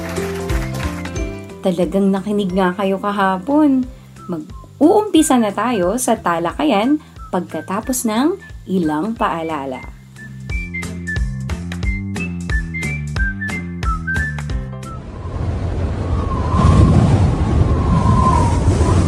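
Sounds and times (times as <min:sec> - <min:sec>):
speech: 0:01.6 - 0:10.0
short rhythmic whistly jingle: 0:09.8 - 0:16.9
strong wind before a typhoon: 0:14.9 - 0:19.0.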